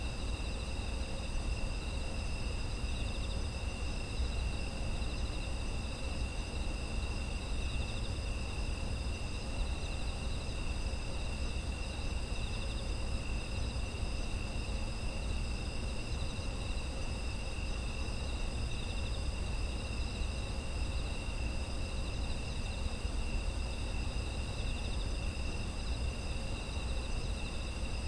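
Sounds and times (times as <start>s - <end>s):
insect chorus trilling: 0.0s - 28.0s.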